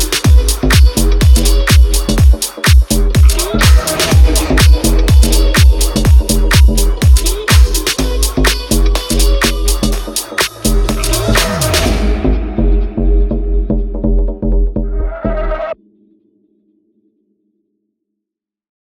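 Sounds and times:
instrumental music: 0.0 - 15.0.

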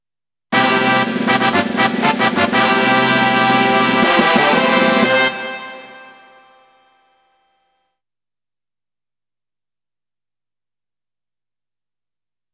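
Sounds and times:
race fanfare: 0.5 - 7.5.

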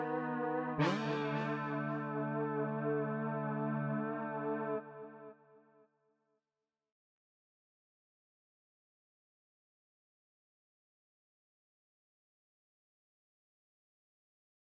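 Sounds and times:
synth leads: 0.3 - 4.8.

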